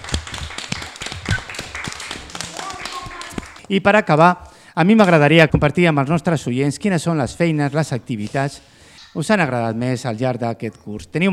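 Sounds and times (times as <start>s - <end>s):
applause: 0.0s - 3.7s
speech: 3.7s - 11.3s.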